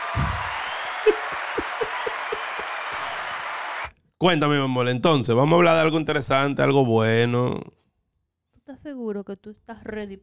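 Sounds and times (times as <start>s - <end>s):
laughter: 0.0s - 3.6s
applause: 0.0s - 3.9s
speech: 4.2s - 7.8s, 8.9s - 10.2s.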